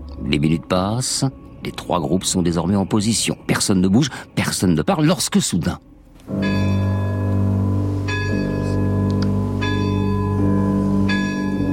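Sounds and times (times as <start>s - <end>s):
speech: 0.3s - 6.6s
great castle clock striking twelve midnight chimes: 6.3s - 11.7s.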